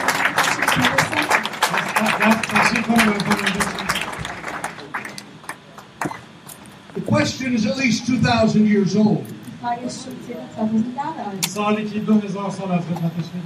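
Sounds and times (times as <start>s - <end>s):
audience clapping hands: 0.0s - 6.6s
speech: 0.8s - 1.0s, 2.3s - 3.7s, 7.2s - 13.4s.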